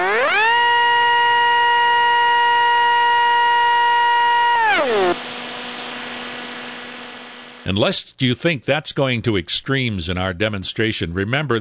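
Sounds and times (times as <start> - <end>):
Panasonic office copier motor whine restarting and shutting off: 0.0 - 7.7
speech: 7.7 - 11.5.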